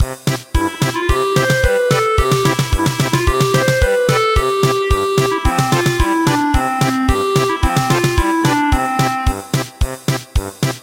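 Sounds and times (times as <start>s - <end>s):
German polka music: 0.0s - 10.8s.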